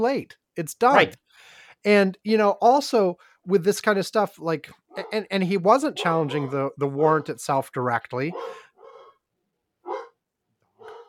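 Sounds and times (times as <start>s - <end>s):
speech: 0.0s - 8.6s
dog barking: 4.9s - 5.2s, 6.0s - 7.3s, 8.3s - 9.2s, 9.8s - 10.2s, 10.8s - 11.0s.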